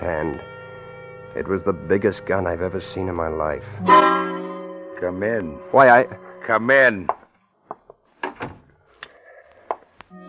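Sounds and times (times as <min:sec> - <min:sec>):
speech: 0:00.0 - 0:00.6, 0:01.3 - 0:04.2, 0:05.0 - 0:07.2
door swinging shut with latch clicks: 0:08.2 - 0:08.7.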